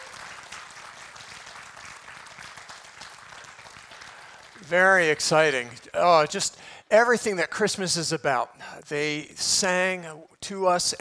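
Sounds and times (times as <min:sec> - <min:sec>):
audience applause: 0:00.0 - 0:04.7
speech: 0:04.6 - 0:10.9.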